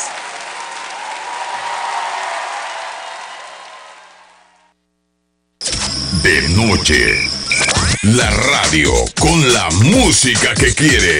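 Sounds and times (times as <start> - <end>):
audience applause: 0.0 - 4.7
speech: 6.3 - 11.1.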